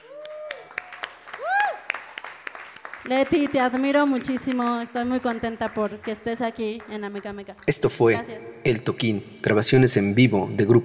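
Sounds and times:
audience applause: 0.0 - 4.0
speech: 3.0 - 10.8.

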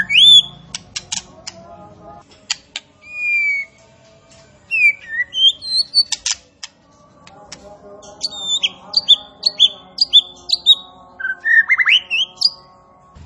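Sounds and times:
striated grassbird song of sharp whistled notes and quick chirps: 0.0 - 0.6, 3.0 - 3.8, 4.7 - 6.3, 8.2 - 12.6.

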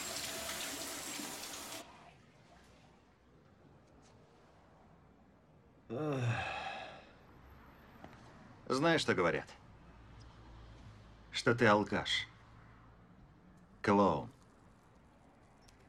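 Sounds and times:
shower running: 0.0 - 1.9
speech: 5.9 - 6.5, 8.7 - 9.6, 11.4 - 12.3, 13.8 - 14.3
breathy vocal sigh: 5.9 - 7.2.

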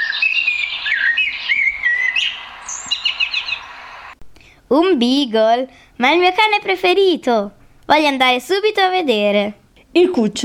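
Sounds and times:
blackbird singing: 0.0 - 4.1
faint hiss: 0.0 - 10.4
speech: 4.7 - 10.4.

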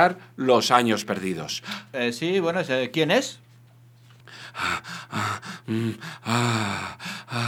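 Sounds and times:
speech: 0.0 - 3.4, 4.3 - 7.4
low steady hum: 0.0 - 7.4
man panting heavily into a telephone after dialing a random number: 4.3 - 7.4.

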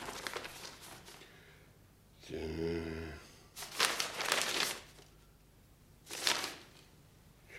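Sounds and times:
paper documents crinkling as written decrees are handled: 0.0 - 1.3, 3.6 - 5.2, 6.1 - 6.9.

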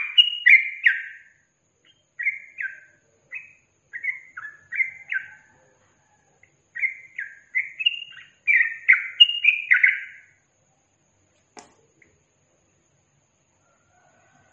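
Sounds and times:
yellow-vented bulbul singing chattering slurred phrases: 0.0 - 5.5, 6.4 - 10.4.

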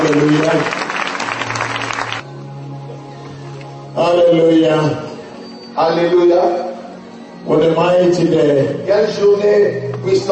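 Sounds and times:
church congregation clapping in praise: 0.0 - 2.3
speech: 0.1 - 0.9, 4.3 - 5.1, 5.8 - 6.6, 7.4 - 10.3.

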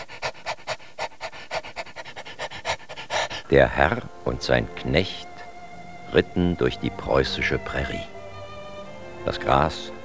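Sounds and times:
dog panting excitedly: 0.0 - 5.6
speech: 3.5 - 5.3, 6.1 - 8.1, 9.2 - 10.0.

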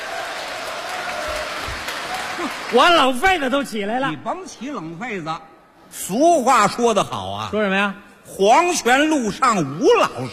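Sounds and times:
audience applause during a crosstalk comedy routine: 0.0 - 3.4
speech: 2.4 - 10.3.

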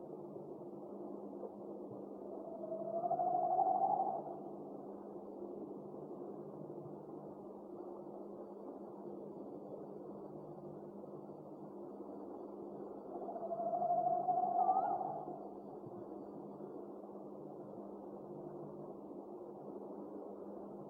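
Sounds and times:
owl calls: 2.3 - 4.5, 13.1 - 15.5.

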